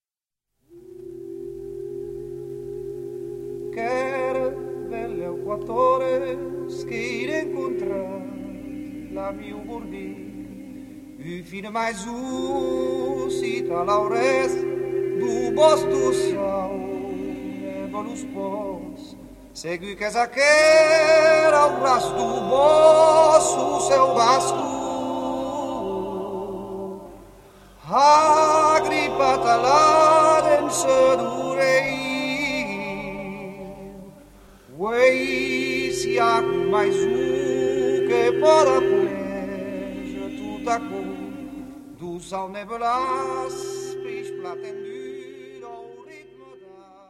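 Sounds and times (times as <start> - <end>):
person singing: 0.7 - 47.0.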